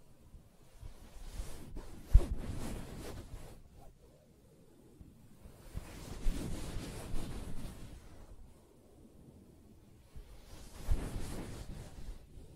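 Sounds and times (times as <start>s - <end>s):
soft scratching and rubbing on fabric: 0.6s - 4.0s, 5.5s - 8.4s, 10.0s - 12.5s.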